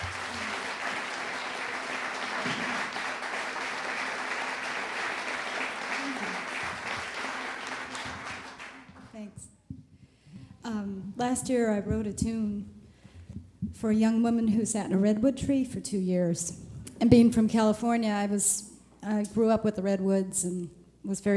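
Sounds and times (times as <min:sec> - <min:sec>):
audience applause: 0:00.0 - 0:09.2
speech: 0:11.3 - 0:12.7, 0:13.8 - 0:21.3.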